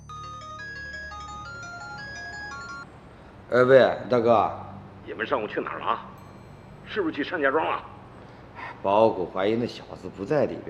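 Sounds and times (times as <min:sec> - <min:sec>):
mobile phone ringtone: 0:00.0 - 0:02.9, 0:06.0 - 0:08.3
speech: 0:03.5 - 0:06.2, 0:06.9 - 0:07.9, 0:08.8 - 0:10.6.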